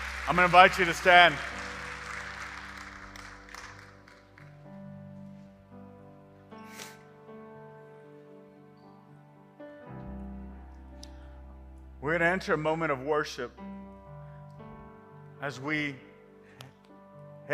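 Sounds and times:
crowd clapping: 0.0s - 4.8s
speech: 0.3s - 1.5s, 12.1s - 13.8s, 15.4s - 16.1s.

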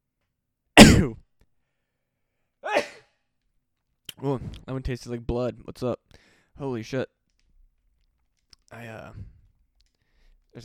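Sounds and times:
person sneezing: 0.8s - 1.2s, 2.6s - 3.1s
speech: 1.0s - 1.2s, 4.2s - 7.2s, 8.7s - 9.3s.

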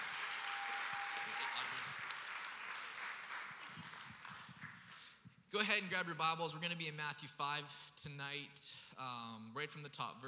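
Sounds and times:
audience applauding: 0.0s - 5.2s
speech: 5.5s - 10.2s.

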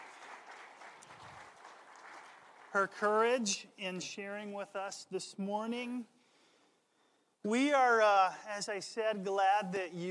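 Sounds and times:
church congregation applause during a morning service: 0.0s - 3.4s
speech: 2.7s - 6.2s, 7.4s - 10.1s.

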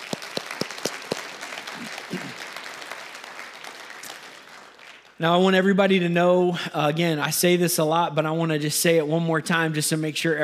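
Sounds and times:
church congregation clapping for online viewers: 0.0s - 5.5s
speech: 1.8s - 2.5s, 5.2s - 10.4s.

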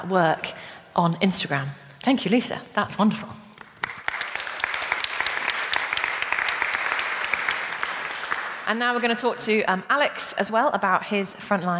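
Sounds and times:
speech: 0.0s - 3.4s, 8.7s - 11.7s
audience applause: 3.8s - 9.0s.

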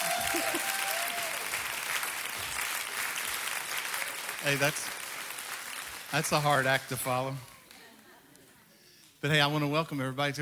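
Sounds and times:
audience applause: 0.0s - 7.8s
speech: 4.4s - 5.0s, 6.1s - 7.5s, 9.2s - 10.3s.

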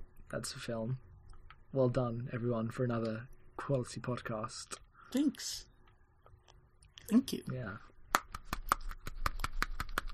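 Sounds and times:
speech: 0.3s - 1.1s, 1.7s - 5.7s, 7.1s - 7.9s
person clapping hands: 8.1s - 10.1s.

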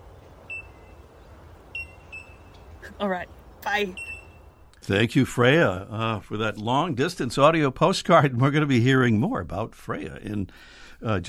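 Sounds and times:
bellbird calls: 0.0s - 4.8s
speech: 2.9s - 4.1s, 4.8s - 11.2s.

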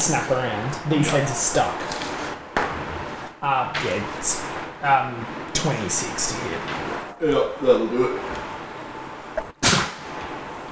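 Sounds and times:
speech: 0.1s - 2.1s, 3.4s - 8.6s
sneeze: 9.6s - 10.0s.

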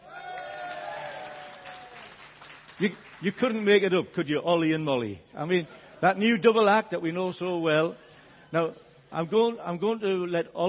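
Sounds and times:
audience cheering: 0.0s - 2.2s
audience applause: 0.0s - 3.6s
speech: 2.8s - 10.6s.

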